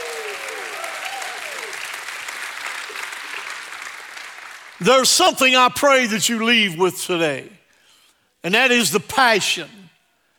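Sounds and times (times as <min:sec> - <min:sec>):
audience shouting praise: 0:00.0 - 0:02.0
audience clapping: 0:00.0 - 0:05.2
speech: 0:04.8 - 0:07.6, 0:08.4 - 0:09.8.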